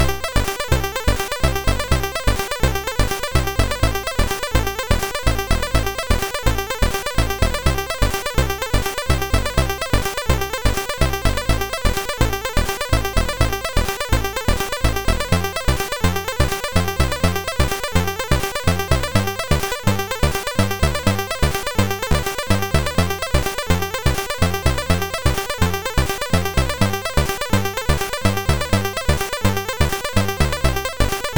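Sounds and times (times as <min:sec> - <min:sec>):
MOS6581R2 chiptune beat: 0:00.0 - 0:31.3.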